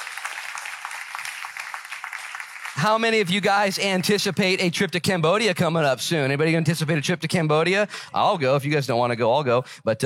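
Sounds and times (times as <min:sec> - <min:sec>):
audience clapping: 0:00.0 - 0:04.6
speech: 0:02.8 - 0:10.0.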